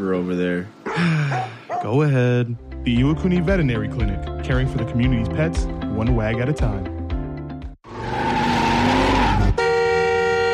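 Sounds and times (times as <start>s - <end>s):
speech: 0.0s - 7.0s
car horn honking at a bad driver: 8.9s - 10.5s.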